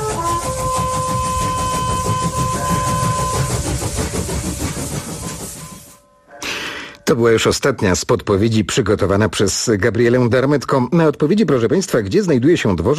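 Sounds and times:
high metallic squeals of a train at a railway station: 0.0s - 7.2s
train rumbling and hissing at a railway station: 0.0s - 8.5s
speech: 7.1s - 12.9s.

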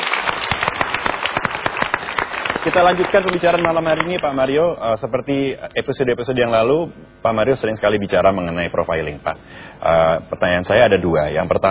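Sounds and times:
talk-show audience applauding: 0.0s - 4.4s
speech: 2.6s - 11.6s.

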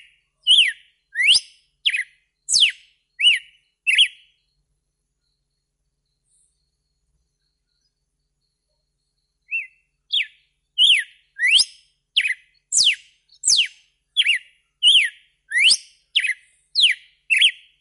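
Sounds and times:
red-cowled cardinal whistled song: 0.0s - 4.6s, 5.2s - 17.7s.

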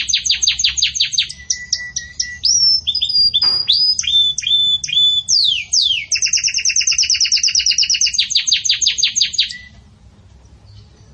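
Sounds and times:
Belgian canary song: 0.0s - 11.1s.

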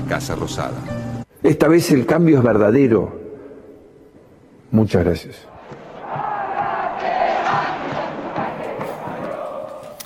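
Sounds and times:
speech: 0.1s - 3.2s, 4.7s - 5.5s
crowd shouting at departing president: 5.5s - 10.0s.

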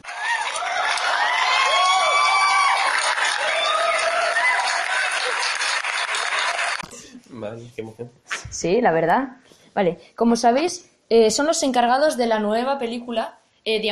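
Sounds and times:
audience whoops and shouts: 0.0s - 5.6s
audience applause greeting two film guests at a show: 0.0s - 6.8s
speech: 7.4s - 13.8s.

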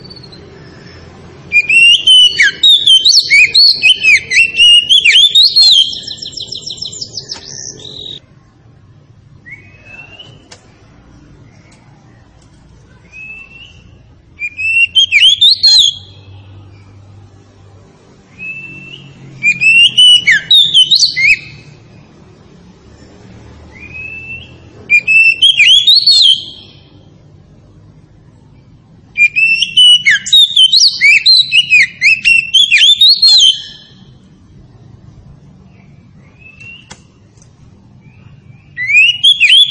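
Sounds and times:
Oriental magpie-robin singing: 0.0s - 8.2s, 9.4s - 10.5s, 12.9s - 17.0s, 18.3s - 22.0s, 23.7s - 27.1s, 29.1s - 34.3s, 35.6s - 37.1s, 37.9s - 39.6s.

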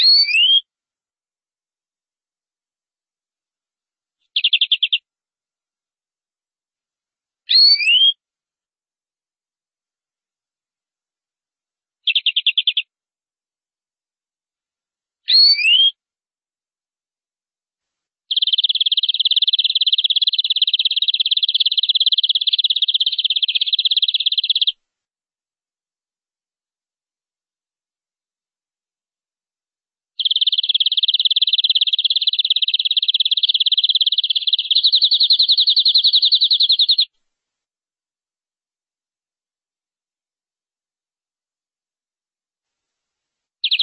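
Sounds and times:
canary singing a trill: 0.0s - 0.6s, 4.3s - 5.0s, 7.5s - 8.2s, 12.0s - 12.9s, 15.3s - 16.0s, 18.3s - 24.7s, 30.2s - 37.1s, 43.6s - 43.8s.

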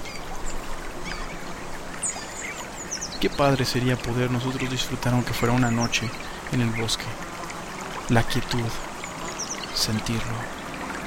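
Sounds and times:
river water flowing: 0.0s - 11.0s
speech: 3.2s - 7.2s, 8.1s - 8.9s, 9.8s - 10.6s.

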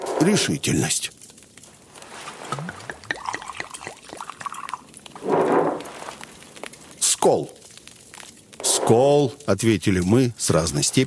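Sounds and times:
speech: 0.2s - 1.2s, 7.2s - 7.6s, 8.9s - 11.0s
liquor poured into a glass: 2.4s - 5.8s.

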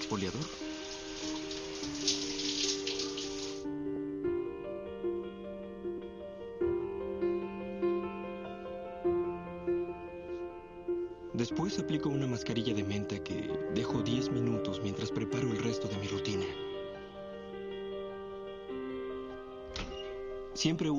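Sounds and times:
running shower water as someone washes with a water-activated cleansing gel: 0.0s - 3.6s
soft sustained music: 0.0s - 20.9s
speech: 0.1s - 2.1s, 11.5s - 16.7s, 20.6s - 20.9s.

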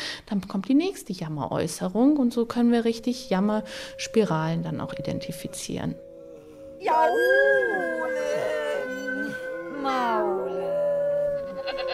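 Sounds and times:
speech: 0.3s - 6.1s, 6.8s - 8.5s
human voice imitating a whining howl: 2.6s - 11.9s.

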